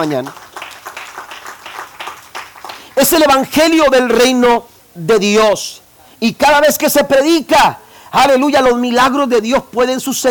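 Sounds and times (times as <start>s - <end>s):
speech: 0.0s - 0.4s, 3.0s - 10.2s
audience applause: 0.0s - 3.0s.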